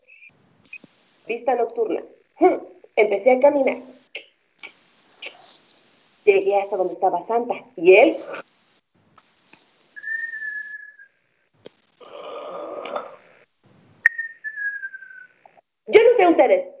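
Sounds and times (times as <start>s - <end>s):
speech: 1.3s - 4.0s, 6.3s - 8.5s, 16.4s - 16.7s
person imitating snoring: 12.0s - 13.2s.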